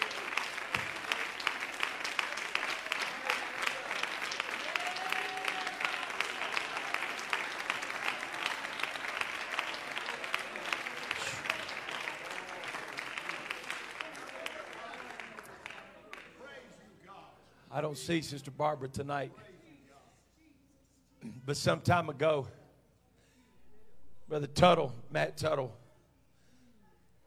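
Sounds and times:
audience clapping hands in praise: 0.0s - 16.7s
speech: 17.8s - 19.5s, 21.5s - 22.6s, 24.4s - 25.8s.

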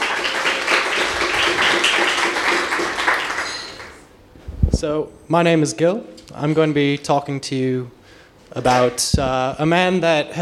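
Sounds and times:
crowd applauding: 0.0s - 4.1s
speech: 4.8s - 10.4s.

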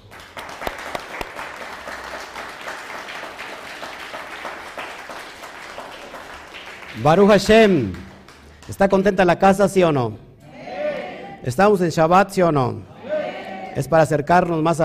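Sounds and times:
audience applause: 0.0s - 8.9s
speech: 7.0s - 8.1s, 8.7s - 10.2s, 11.4s - 12.9s, 13.8s - 14.8s.

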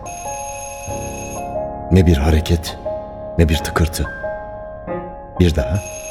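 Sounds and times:
electronic doorbell chime: 0.0s - 1.6s, 5.7s - 6.0s
speech: 1.9s - 4.2s, 5.4s - 6.0s.

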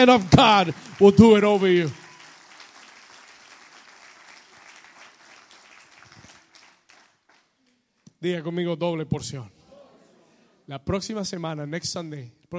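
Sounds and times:
speech: 0.0s - 2.0s, 8.2s - 9.6s, 10.7s - 12.5s
audience applause: 0.0s - 7.5s.

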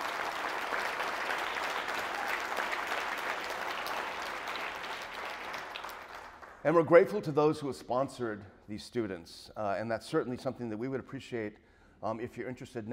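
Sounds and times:
applause: 0.0s - 6.6s
speech: 6.6s - 12.9s.

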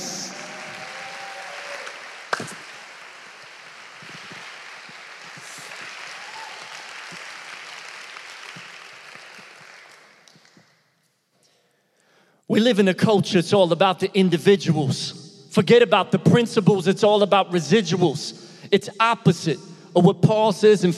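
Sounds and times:
audience clapping to welcome a performer: 0.0s - 10.8s
speech: 2.4s - 2.7s, 12.6s - 20.9s.

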